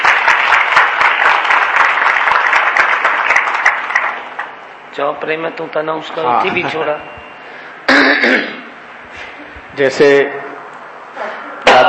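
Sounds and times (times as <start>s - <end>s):
audience clapping: 0.0s - 4.6s
speech: 5.0s - 7.2s, 8.2s - 8.6s, 9.8s - 10.4s.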